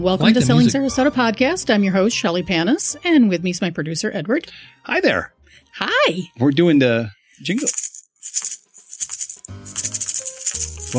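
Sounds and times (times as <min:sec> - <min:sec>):
speech: 0:00.0 - 0:07.8
maracas being shaken: 0:07.5 - 0:10.9.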